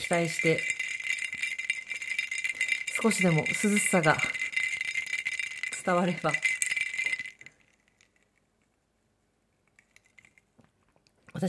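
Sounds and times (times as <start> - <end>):
speech: 0.0 - 0.8, 3.0 - 4.4, 5.8 - 6.5
ice cubes rattling in a glass: 0.0 - 8.3, 9.8 - 10.5.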